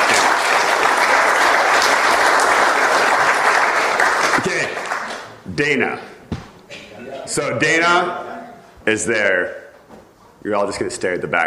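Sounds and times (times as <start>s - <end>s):
audience applause: 0.0s - 5.3s
speech: 5.6s - 6.1s, 7.4s - 8.2s, 8.8s - 9.6s, 10.4s - 11.4s.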